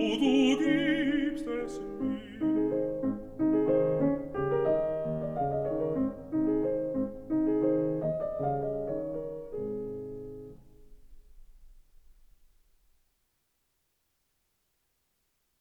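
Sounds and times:
person singing: 0.0s - 3.0s
piano: 0.0s - 13.1s.

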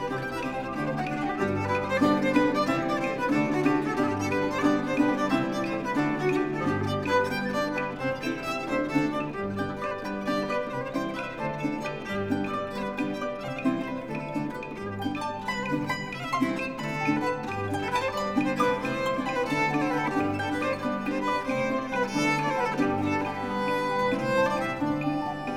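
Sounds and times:
double harp: 0.0s - 25.5s
guitar: 0.0s - 25.5s
soprano viol improvisation: 0.0s - 25.5s.

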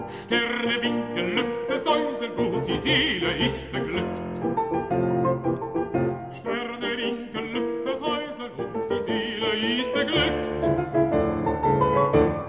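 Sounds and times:
person singing: 0.0s - 4.6s, 6.3s - 10.9s
piano accompaniment: 0.0s - 12.4s.

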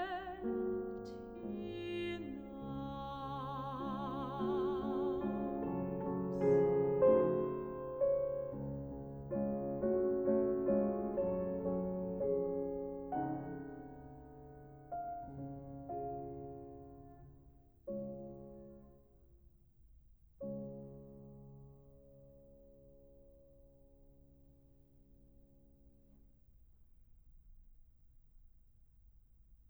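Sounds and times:
person singing: 0.0s - 7.5s
piano: 0.0s - 27.1s.

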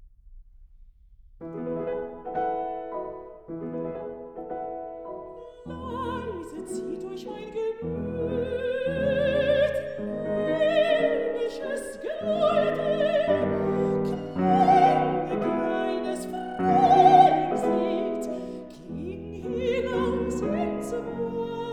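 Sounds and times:
piano: 1.4s - 21.7s
person singing: 5.4s - 21.7s.

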